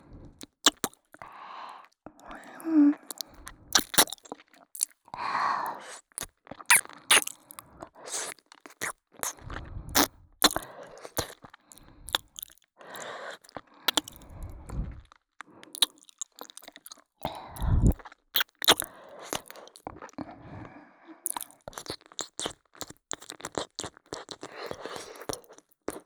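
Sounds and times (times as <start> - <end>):
shallow ear licking in the right ear: 0.7 - 0.9, 3.1 - 4.2, 5.8 - 11.5, 12.1 - 13.1, 13.9 - 14.5, 15.7 - 19.8, 21.3 - 26.0.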